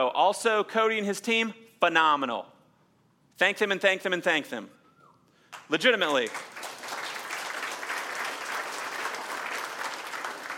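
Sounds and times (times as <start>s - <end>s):
speech: 0.0s - 2.5s, 3.4s - 4.8s, 5.7s - 6.5s
audience clapping: 5.5s - 10.5s.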